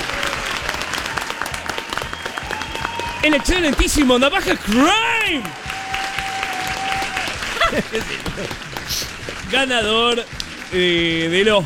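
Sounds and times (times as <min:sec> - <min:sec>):
audience applause: 0:00.0 - 0:11.6
speech: 0:03.2 - 0:05.6, 0:07.7 - 0:11.6
laughter: 0:07.4 - 0:09.2.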